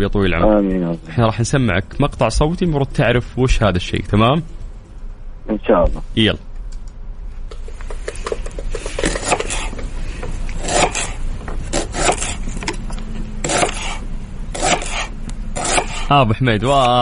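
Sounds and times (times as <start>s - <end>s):
speech: 0.0s - 4.6s, 5.5s - 6.5s, 16.1s - 17.0s
knife chopping onion on a wooden cutting board: 8.1s - 9.8s, 10.6s - 12.8s, 13.4s - 16.1s.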